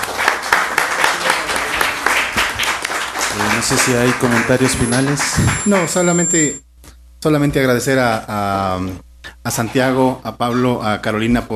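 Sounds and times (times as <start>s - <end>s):
audience applause: 0.0s - 6.4s
speech: 3.6s - 11.5s.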